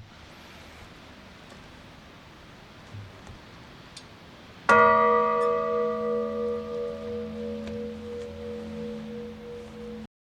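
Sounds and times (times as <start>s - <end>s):
bell ringing: 4.7s - 10.1s.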